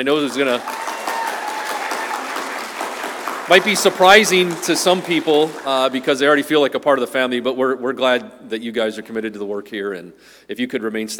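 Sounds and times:
speech: 0.0s - 0.8s, 3.5s - 11.1s
audience applause: 0.0s - 6.3s.

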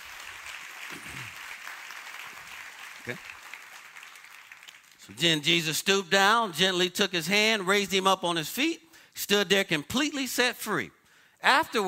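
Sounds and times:
audience applause: 0.0s - 5.0s
speech: 3.1s - 3.4s, 5.1s - 11.8s.

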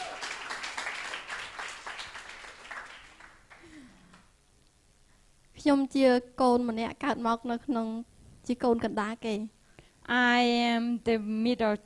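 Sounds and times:
audience applause welcoming a woman at a talk: 0.0s - 3.9s
speech: 5.6s - 11.8s.

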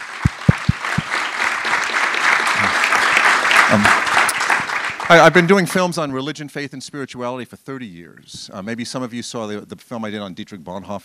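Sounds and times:
round of applause: 0.0s - 5.7s
low thumps: 0.2s - 1.1s
speech: 5.1s - 11.0s.

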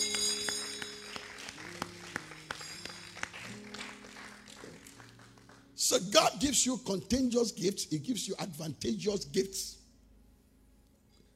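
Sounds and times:
audience clapping: 0.0s - 6.5s
speech: 5.9s - 9.8s.

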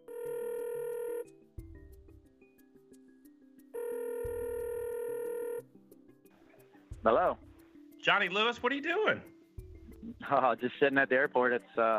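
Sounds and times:
phone line ringing: 0.0s - 1.4s, 3.7s - 5.7s
speech: 7.0s - 7.4s, 8.0s - 9.3s, 10.3s - 11.9s.

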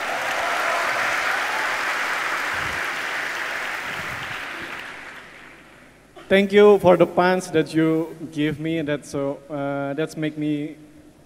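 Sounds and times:
audience applause: 0.0s - 5.7s
speech: 6.3s - 10.8s.

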